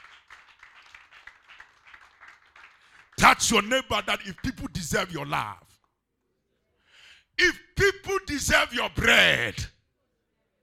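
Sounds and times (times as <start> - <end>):
crowd clapping: 0.0 - 5.4
speech: 3.4 - 5.7, 7.4 - 9.7.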